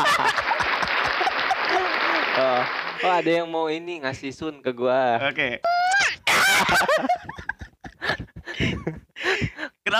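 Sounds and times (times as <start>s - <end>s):
laughter: 0.0s - 3.3s, 6.3s - 9.7s
applause: 0.0s - 3.4s
speech: 2.6s - 5.7s, 6.6s - 7.4s, 8.6s - 9.9s.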